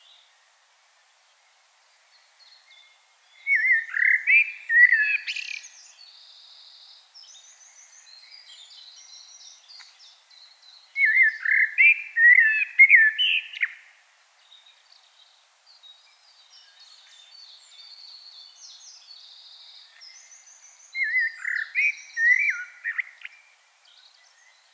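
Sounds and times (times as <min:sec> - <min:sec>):
common blackbird song: 0:02.2 - 0:24.7.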